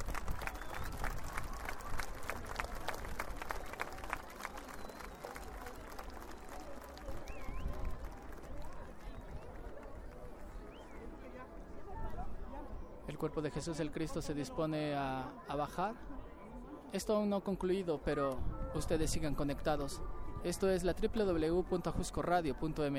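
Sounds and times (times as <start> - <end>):
crowd applauding: 0.0 - 10.4
speech: 13.2 - 16.1, 16.9 - 22.9.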